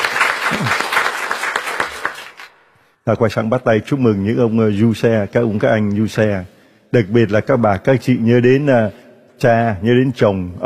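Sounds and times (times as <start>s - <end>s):
church congregation applauding at a feast-day service: 0.0s - 2.6s
speech: 3.1s - 10.6s.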